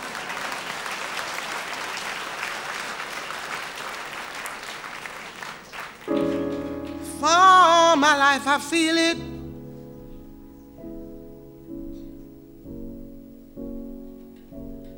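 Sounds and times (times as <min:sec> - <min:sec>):
audience clapping and applause: 0:00.0 - 0:08.3
speech: 0:08.0 - 0:09.3.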